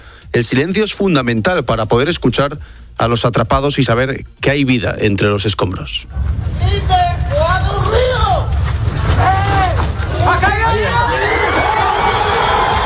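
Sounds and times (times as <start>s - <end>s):
speech: 0.4s - 7.0s
low rumble: 5.7s - 12.8s
excited crowd cheering at rubble rescue: 6.1s - 12.8s.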